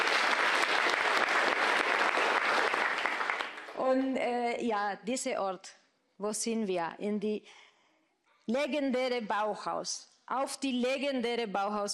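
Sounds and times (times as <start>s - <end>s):
audience applause: 0.0s - 3.8s
speech: 3.9s - 7.7s, 8.5s - 11.9s.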